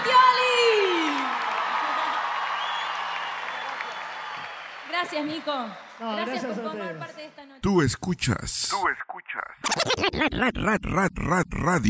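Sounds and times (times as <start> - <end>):
cheering: 0.0 - 7.0
applause: 0.0 - 7.1
speech: 5.0 - 11.8.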